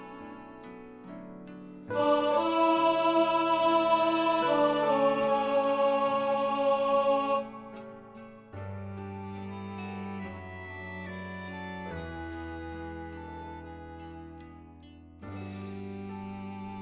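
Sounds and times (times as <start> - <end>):
baritone voice singing in rehearsal: 1.9 - 8.2
tenor voice singing in rehearsal: 1.9 - 9.8.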